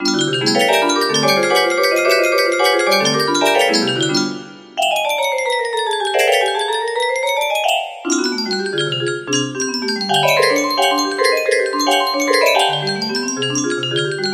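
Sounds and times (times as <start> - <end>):
music box melody: 0.0 - 14.3.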